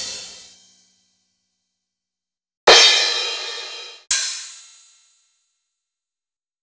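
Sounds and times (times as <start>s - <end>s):
sliced cymbals on a keyboard: 2.7s - 4.0s.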